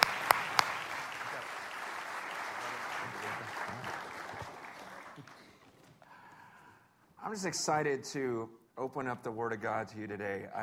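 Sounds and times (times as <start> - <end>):
church congregation clapping to welcome a speaker: 0.0 - 6.1
speech: 7.3 - 10.6.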